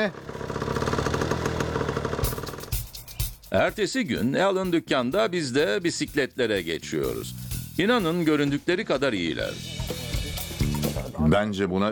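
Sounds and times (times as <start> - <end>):
speech: 0.0 - 0.4, 3.5 - 9.7, 11.2 - 11.9
engine idling after carburetor refit: 0.0 - 3.1.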